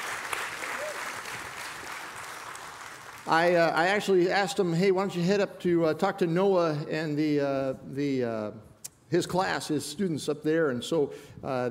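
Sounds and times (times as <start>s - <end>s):
audience applause: 0.0s - 3.5s
speech: 3.2s - 11.6s.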